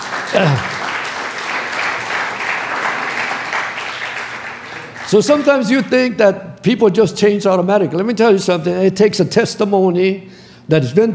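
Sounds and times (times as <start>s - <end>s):
audience clapping: 0.0s - 5.9s
person cheering: 0.2s - 0.9s
speech: 0.3s - 0.8s, 5.1s - 11.1s.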